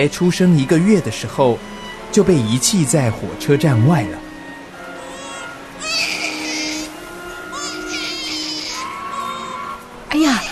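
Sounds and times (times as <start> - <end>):
speech: 0.0 - 4.2
month-old baby crying loudly outside a train station: 4.8 - 10.5.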